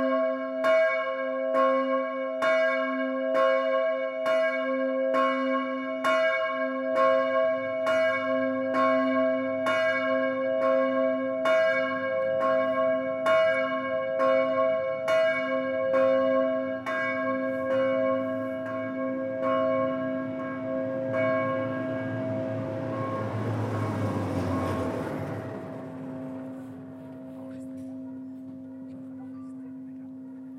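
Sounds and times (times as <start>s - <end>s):
solo bells ringing: 0.0s - 30.5s.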